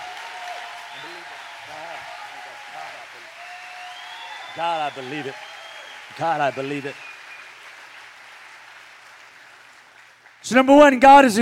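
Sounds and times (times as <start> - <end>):
people clapping hands: 0.0 - 10.9
speech: 4.6 - 5.5, 6.1 - 7.1, 10.5 - 11.4.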